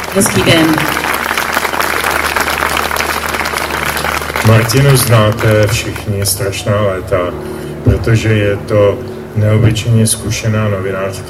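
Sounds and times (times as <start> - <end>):
audience applause: 0.0 - 6.5
speech: 0.2 - 1.1, 4.5 - 11.2.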